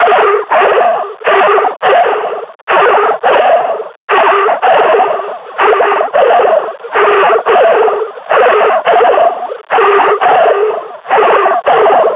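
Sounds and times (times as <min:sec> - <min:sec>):
panting: 0:00.0 - 0:12.1.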